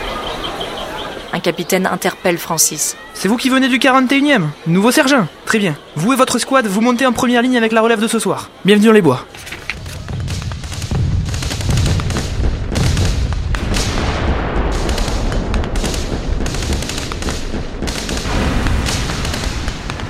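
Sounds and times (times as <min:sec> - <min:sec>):
speech: 0:01.3 - 0:09.5
enemy artillery barrage on World War I trenches: 0:09.8 - 0:20.0
rapid gunfire: 0:10.0 - 0:20.0.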